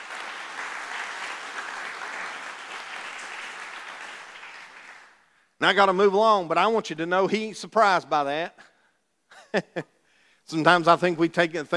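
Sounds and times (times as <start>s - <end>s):
crowd applause: 0.0s - 5.2s
speech: 5.6s - 8.7s, 9.5s - 9.9s, 10.5s - 11.7s.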